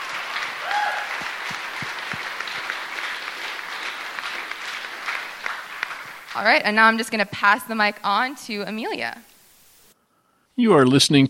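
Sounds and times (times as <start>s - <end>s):
town hall audience applause: 0.0s - 7.2s
speech: 6.4s - 9.3s, 10.6s - 11.2s.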